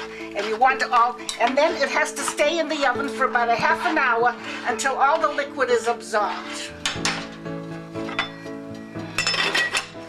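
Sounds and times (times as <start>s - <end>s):
cover set onto an oven dish of kasha clinking: 0.4s - 3.2s, 8.0s - 8.5s, 9.2s - 10.0s
speech: 0.4s - 7.1s.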